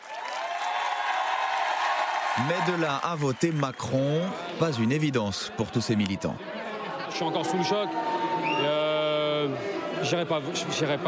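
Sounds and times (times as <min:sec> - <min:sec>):
rally crowd applause: 0:00.0 - 0:05.2
speech: 0:02.4 - 0:08.8, 0:09.4 - 0:11.0.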